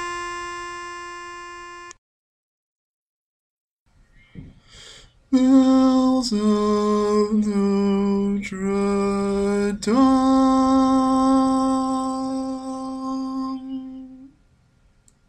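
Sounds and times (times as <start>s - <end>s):
baritone barbershop tags: 5.3s - 14.3s.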